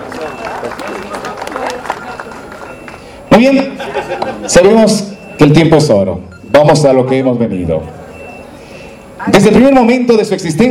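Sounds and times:
audience applause: 0:00.0 - 0:03.2
speech: 0:00.6 - 0:01.2, 0:03.4 - 0:08.0, 0:09.2 - 0:10.6
laughter: 0:03.4 - 0:05.0.

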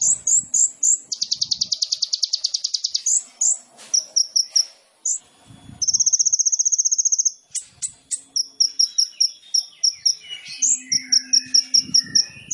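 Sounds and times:
sunbird song: 0:00.0 - 0:12.5.

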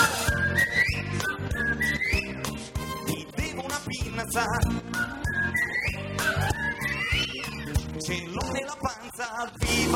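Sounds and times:
person whistling a bright wavering melody: 0:00.0 - 0:02.6, 0:04.5 - 0:07.8
rhythmic music with regular low thumps: 0:00.0 - 0:09.9
speech: 0:04.4 - 0:04.8.

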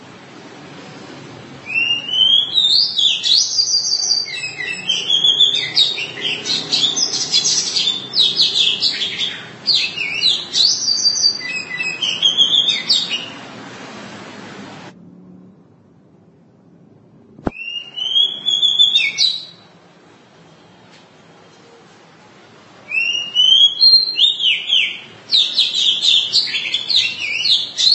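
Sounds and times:
Oriental magpie-robin singing: 0:01.6 - 0:13.4, 0:17.5 - 0:19.7, 0:22.9 - 0:27.9.

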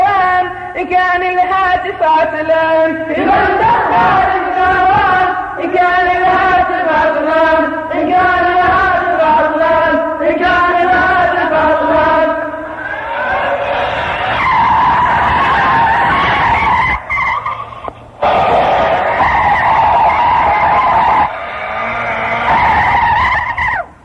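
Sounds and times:
speech: 0:00.8 - 0:12.1
engine roar: 0:12.6 - 0:24.0
tires screeching from a drifting car: 0:12.6 - 0:24.0.

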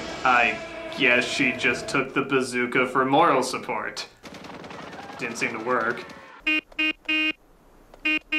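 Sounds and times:
speech: 0:00.3 - 0:04.5, 0:05.2 - 0:07.3
horn honking Morse code: 0:06.4 - 0:07.4, 0:08.0 - 0:08.3.

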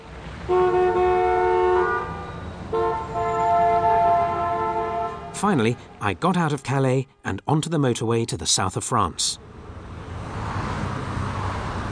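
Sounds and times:
low rumble of traffic engines: 0:00.0 - 0:06.0, 0:09.4 - 0:11.8
car horns honking in town traffic: 0:00.4 - 0:05.8
speech: 0:05.4 - 0:09.6.

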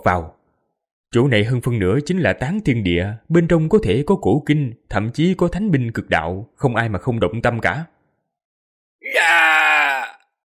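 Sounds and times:
speech: 0:00.0 - 0:00.4, 0:01.1 - 0:07.9
man screaming in agony and terror: 0:09.0 - 0:10.3.

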